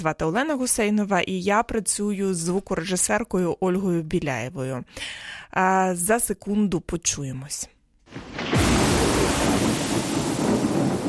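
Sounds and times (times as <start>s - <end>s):
speech: 0.0s - 8.4s
rain-like hiss: 8.1s - 11.0s
thunder rumbling: 8.1s - 11.0s.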